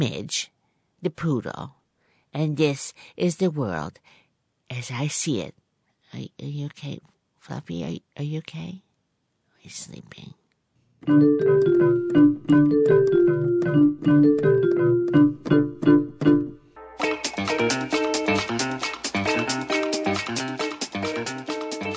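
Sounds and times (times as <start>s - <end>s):
speech: 0.0s - 8.8s, 9.6s - 10.4s, 11.0s - 16.5s
instrumental band music: 11.0s - 21.9s.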